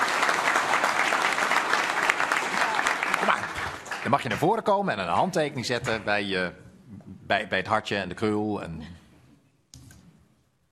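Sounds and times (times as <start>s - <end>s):
audience applause: 0.0s - 4.8s
speech: 4.0s - 6.6s, 7.3s - 9.0s.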